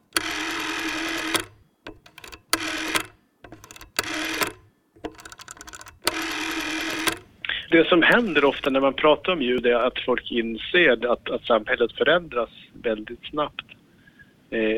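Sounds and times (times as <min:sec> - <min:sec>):
rotary telephone dial turning: 0:00.0 - 0:09.9
speech: 0:07.7 - 0:13.7, 0:14.5 - 0:14.7.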